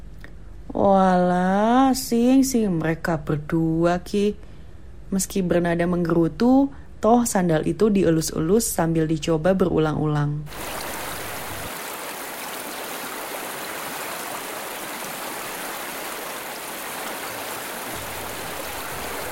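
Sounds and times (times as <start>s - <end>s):
speech: 0.8s - 4.5s, 5.1s - 10.8s
steady light drizzle: 10.5s - 19.3s.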